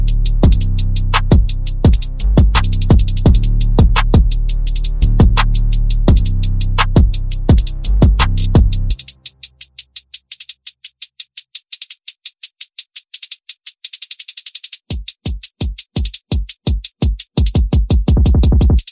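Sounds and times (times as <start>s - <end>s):
bass: 0.0s - 9.2s
percussion: 0.0s - 18.8s.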